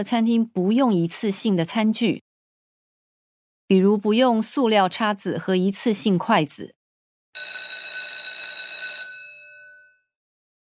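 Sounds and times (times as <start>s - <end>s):
speech: 0.0s - 2.2s, 3.7s - 6.8s
school bell ringing: 7.4s - 10.1s.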